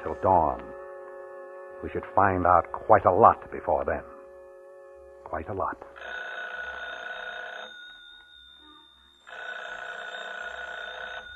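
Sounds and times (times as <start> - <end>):
speech: 0.0 - 0.7, 1.8 - 4.1, 5.3 - 6.2
telephone bell ringing: 5.9 - 11.3.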